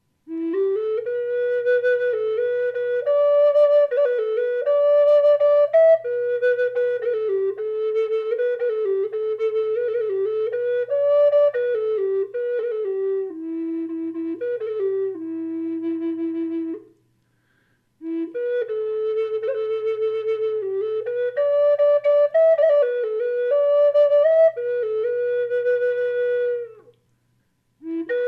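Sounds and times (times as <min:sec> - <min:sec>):
flutes in E minor: 0:00.2 - 0:17.0, 0:18.0 - 0:27.1, 0:27.8 - 0:28.2.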